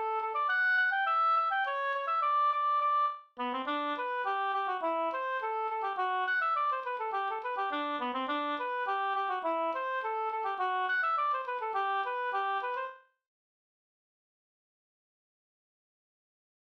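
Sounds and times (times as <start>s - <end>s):
folk walking tune: 0.1s - 13.0s.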